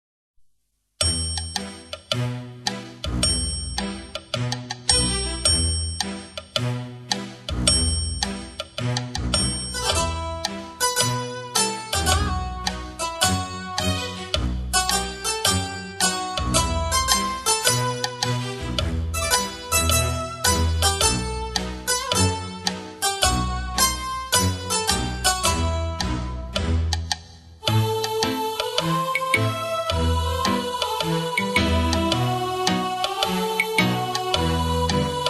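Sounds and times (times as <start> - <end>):
light comedic background music: 1.0 - 35.2.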